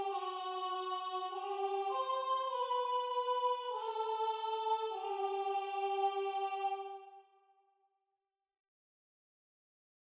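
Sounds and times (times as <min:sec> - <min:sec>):
soprano singing: 0:00.0 - 0:07.2.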